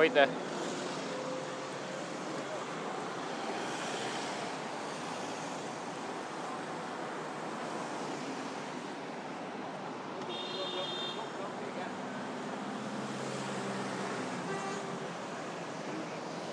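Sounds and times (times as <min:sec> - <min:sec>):
road traffic passing: 0:00.0 - 0:16.5.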